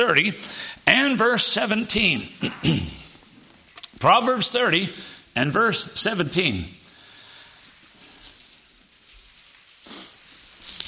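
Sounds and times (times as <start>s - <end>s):
speech: 0.0s - 3.0s, 4.0s - 6.8s
Bible pages turning: 7.9s - 10.8s.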